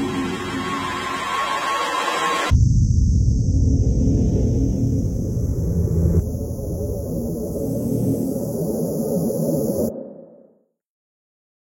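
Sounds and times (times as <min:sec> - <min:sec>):
obscure granular ambiences: 0:00.0 - 0:10.5.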